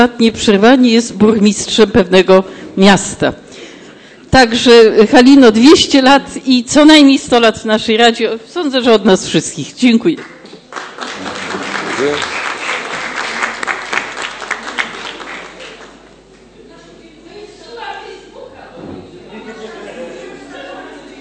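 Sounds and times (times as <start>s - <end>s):
speech: 0.0s - 3.4s, 4.3s - 10.4s, 12.0s - 12.4s
council members applauding: 10.2s - 16.0s
murmuring voices: 11.2s - 21.1s.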